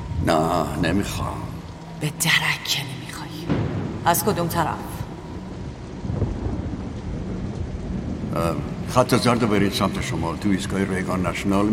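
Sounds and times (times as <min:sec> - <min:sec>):
rain: 0:00.0 - 0:11.7
speech: 0:00.2 - 0:05.0, 0:08.4 - 0:11.7
thunder: 0:03.4 - 0:11.7.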